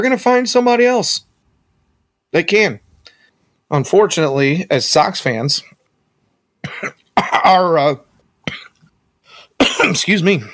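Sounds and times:
speech: 0.0 - 1.3, 2.3 - 2.8, 3.7 - 5.8, 6.6 - 8.6, 9.8 - 10.5
person coughing and choking on a tomato skin stuck in the throat while eating: 6.6 - 7.6, 8.4 - 8.8, 9.6 - 10.1.

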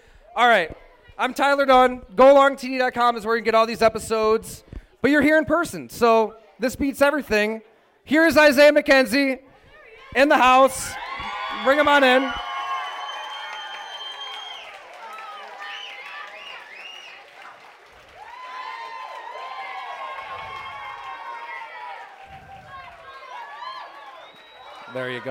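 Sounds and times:
speech: 0.4 - 9.5, 10.1 - 12.4
live crowd cheering and shouting: 9.8 - 25.2
scattered applause: 10.9 - 25.2.

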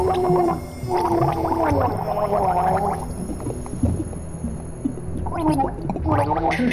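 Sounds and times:
voice gurgling and choking through water: 0.0 - 3.6, 5.2 - 6.7.

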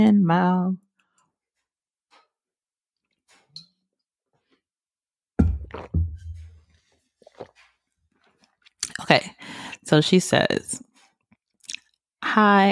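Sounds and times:
speech: 0.0 - 0.8, 9.0 - 10.9, 12.2 - 12.7
person drinking water: 5.5 - 9.1, 11.6 - 12.0.

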